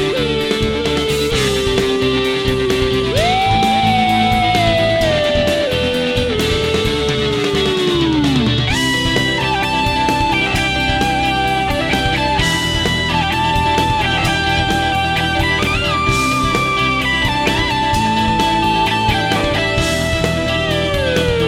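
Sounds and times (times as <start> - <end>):
guitar song played through a multi-effects pedal: 0.0 - 21.4.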